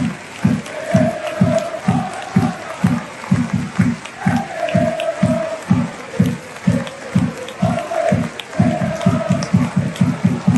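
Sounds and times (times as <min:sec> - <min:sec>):
football crowd chanting at a Celtic match: 0:00.0 - 0:10.5.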